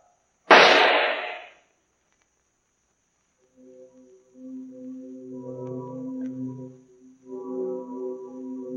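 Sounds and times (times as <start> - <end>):
pistol shot: 0.5 - 1.6.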